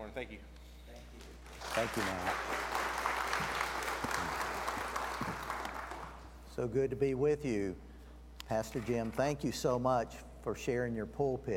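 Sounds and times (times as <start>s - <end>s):
speech: 0.1s - 2.8s, 6.6s - 7.9s, 8.5s - 11.5s
church congregation applauding a guest speaker: 1.5s - 6.3s.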